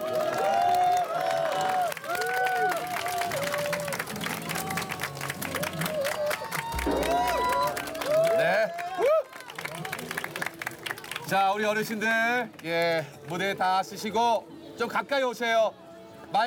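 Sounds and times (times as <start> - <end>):
raised voices and cheers: 0.0 - 11.3
crowd applauding: 0.0 - 13.4
speech: 11.5 - 16.4.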